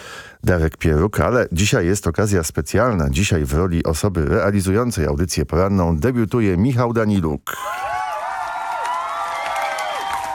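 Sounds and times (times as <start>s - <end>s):
speech: 0.5s - 7.9s
studio audience at a radio morning show applauding and cheering: 7.6s - 10.3s.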